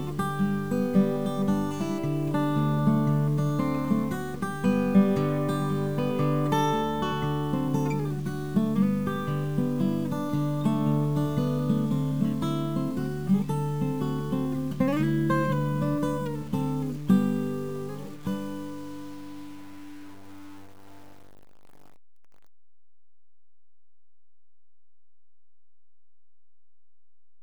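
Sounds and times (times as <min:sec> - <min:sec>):
music: 0:00.0 - 0:21.2.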